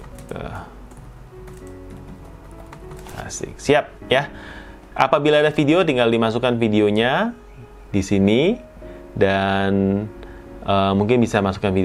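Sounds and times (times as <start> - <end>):
typing a product description on a computer keyboard: 0.0 - 3.5
speech: 3.3 - 11.8.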